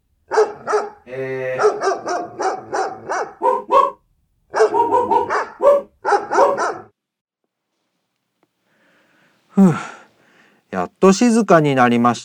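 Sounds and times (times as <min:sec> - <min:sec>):
dog barking: 0:00.3 - 0:07.0
speech: 0:01.1 - 0:01.3, 0:11.0 - 0:12.2.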